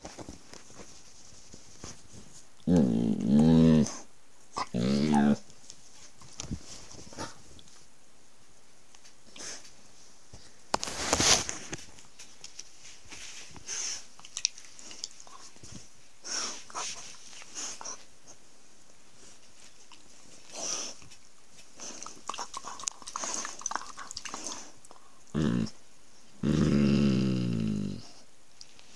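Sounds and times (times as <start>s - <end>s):
puppy growling playfully: 2.6s - 4.0s, 4.6s - 5.4s, 25.3s - 25.8s, 26.4s - 28.2s.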